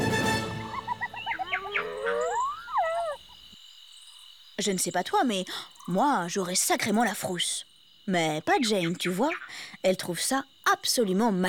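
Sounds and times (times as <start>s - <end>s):
hyenas cackling while fighting over prey: 0.4s - 3.5s
lions roaring: 1.4s - 3.2s
speech: 4.6s - 11.4s.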